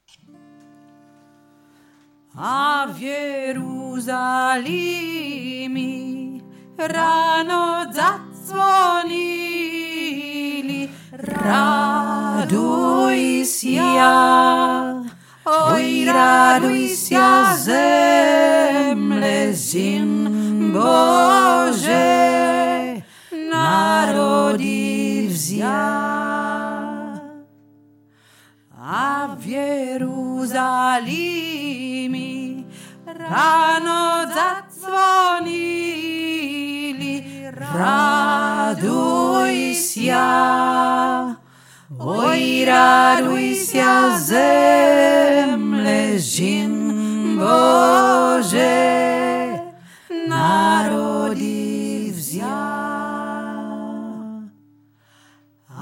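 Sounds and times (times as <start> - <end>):
deep voice singing a Ukrainian Christmas song: 2.4 - 27.6, 28.7 - 54.6, 55.7 - 55.8.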